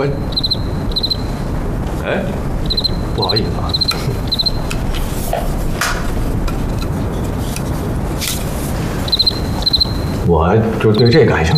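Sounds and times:
speech: 0.0 - 0.3, 3.2 - 3.9, 10.5 - 11.5
cricket chirping: 0.0 - 5.1, 8.0 - 11.5
hissy noise: 0.0 - 11.5.

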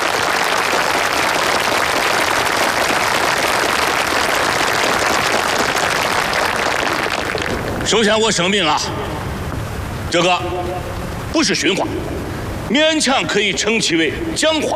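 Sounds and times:
audience applause: 0.0 - 7.9
speech: 7.9 - 9.2, 10.1 - 14.7.

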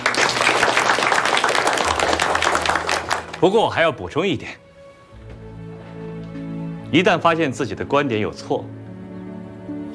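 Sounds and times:
students applauding: 0.0 - 3.6
speech: 3.4 - 4.6, 6.9 - 8.8.

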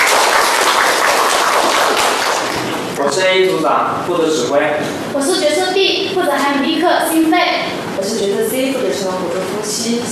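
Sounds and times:
audience applause welcoming presenters: 0.0 - 3.0
speech: 3.0 - 10.1.

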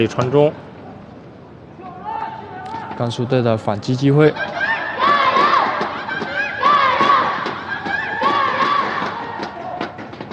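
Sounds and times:
speech: 0.0 - 0.6, 3.0 - 4.5
football fans cheering in stadium: 4.4 - 10.3.

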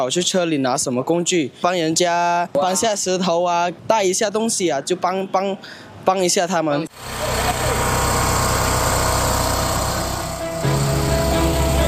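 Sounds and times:
speech: 0.0 - 7.8
electric generator roaring at night at an earthquake rescue site: 6.9 - 11.8.

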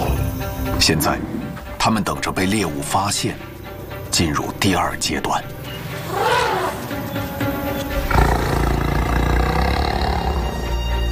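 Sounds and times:
lions roaring: 0.7 - 1.7, 5.9 - 10.9
speech: 0.8 - 3.5, 4.1 - 6.2.

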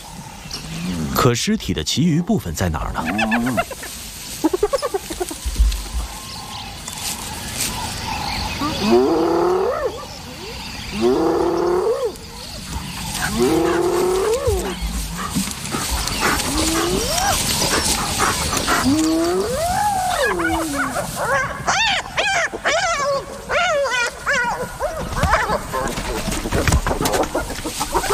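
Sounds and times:
speech: 1.2 - 4.0
three spotted hyenas fighting over a leg bone: 2.6 - 6.1, 8.0 - 28.1.

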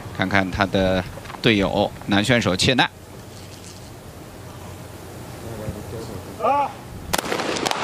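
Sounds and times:
speech: 0.2 - 3.0
gunshot at a shooting competition: 7.1 - 7.8.

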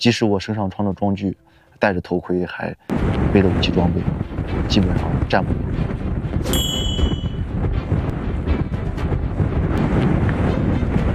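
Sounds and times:
speech: 0.0 - 6.6
strong wind roaring at an outpost, buffeting the microphone: 2.9 - 11.1
metallic ding: 6.5 - 7.5.

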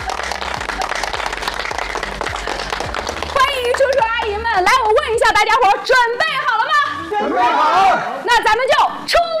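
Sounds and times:
audience applause: 0.0 - 4.4
speech: 4.6 - 6.4, 7.2 - 9.3.

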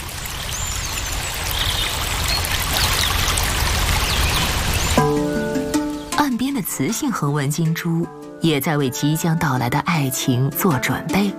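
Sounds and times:
babbling stream: 0.0 - 8.0
speech: 6.8 - 11.3.

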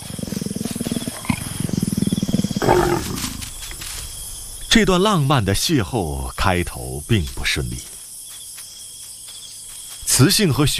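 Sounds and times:
leopard roaring: 0.0 - 3.7
speech: 4.8 - 7.9, 10.2 - 10.7.

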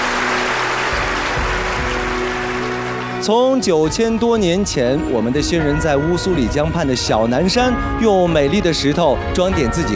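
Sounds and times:
crowd applause: 0.0 - 4.2
speech: 3.2 - 9.9.

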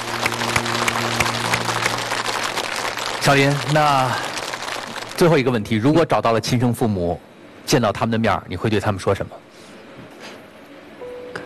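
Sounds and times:
studio audience applause: 0.0 - 5.7
speech: 3.2 - 4.3, 5.2 - 9.4.

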